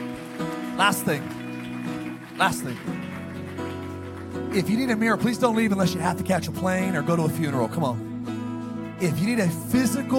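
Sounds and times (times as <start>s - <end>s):
audience clapping: 0.0s - 6.5s
speech: 0.8s - 1.4s, 2.4s - 3.0s, 4.5s - 8.1s, 9.0s - 10.1s.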